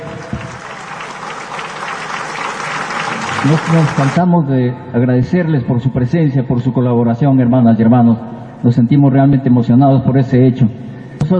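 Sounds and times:
audience applause: 0.0s - 4.2s
speech: 3.4s - 11.3s.

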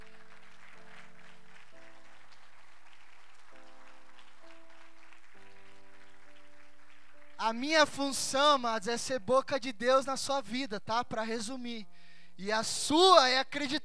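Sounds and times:
audience applause: 0.0s - 7.4s
sustained keyboard chords: 0.0s - 9.3s
speech: 7.5s - 13.8s.

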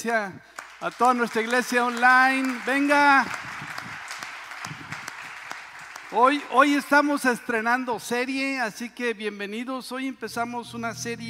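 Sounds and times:
speech: 0.0s - 3.5s, 6.1s - 11.2s
audience applause: 0.6s - 6.7s.

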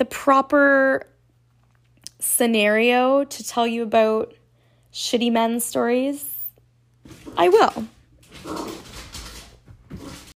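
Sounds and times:
speech: 0.0s - 1.1s, 2.2s - 6.3s, 7.1s - 8.8s
dog scratching and scuffling at a door: 7.1s - 10.3s.

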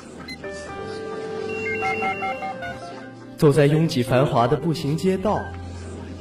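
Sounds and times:
telephone ringing: 1.4s - 3.0s
speech: 1.9s - 2.7s, 3.4s - 5.6s.

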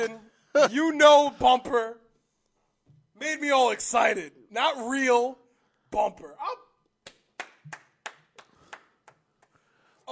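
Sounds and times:
speech: 0.0s - 2.0s, 3.2s - 6.6s
hands clapping applause: 7.0s - 9.7s.

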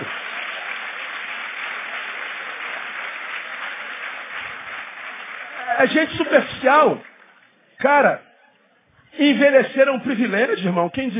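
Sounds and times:
audience applauding: 0.0s - 7.6s
speech: 5.8s - 7.1s, 7.8s - 8.3s, 9.1s - 11.1s.

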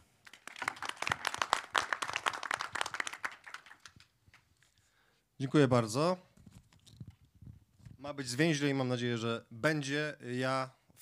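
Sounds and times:
audience applause: 0.2s - 4.1s
speech: 5.4s - 6.3s, 8.2s - 11.0s.

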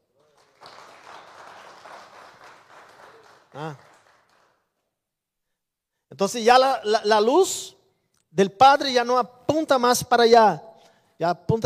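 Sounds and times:
audience applause: 0.0s - 4.6s
speech: 3.6s - 3.9s, 6.2s - 11.6s.

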